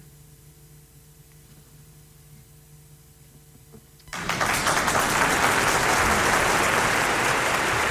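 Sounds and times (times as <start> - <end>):
audience applause: 4.1 - 7.8.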